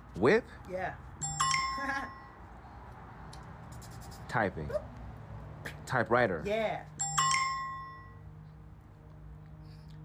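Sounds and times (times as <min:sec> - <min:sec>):
speech: 0:00.2 - 0:02.2, 0:04.3 - 0:04.9, 0:05.9 - 0:06.9
alarm clock ringing: 0:01.2 - 0:02.4, 0:07.0 - 0:08.2.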